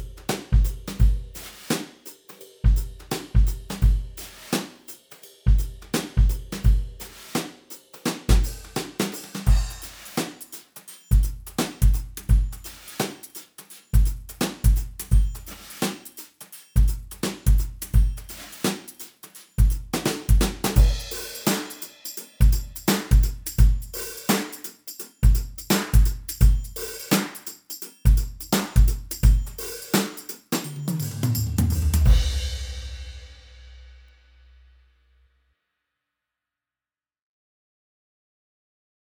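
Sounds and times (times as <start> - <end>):
pop drums played with brushes: 0.0 - 34.6.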